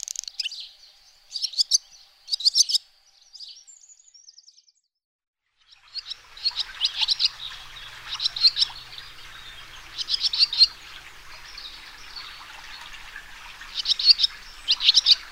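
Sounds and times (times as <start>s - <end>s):
swallow chattering: 0.0s - 0.7s, 1.3s - 2.8s, 5.8s - 15.3s.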